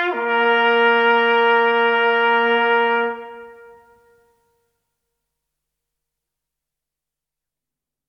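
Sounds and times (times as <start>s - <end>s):
hunting horn call: 0.0s - 4.3s.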